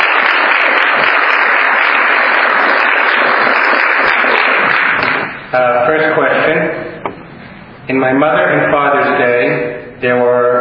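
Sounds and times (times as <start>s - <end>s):
audience applause: 0.0s - 5.5s
speech: 5.5s - 6.8s, 7.9s - 10.5s.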